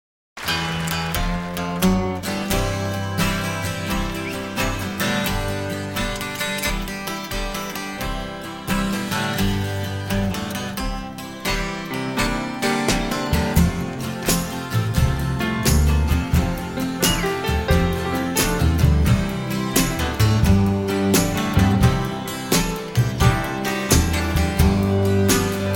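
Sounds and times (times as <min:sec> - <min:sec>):
live acoustic music: 0:00.4 - 0:25.7.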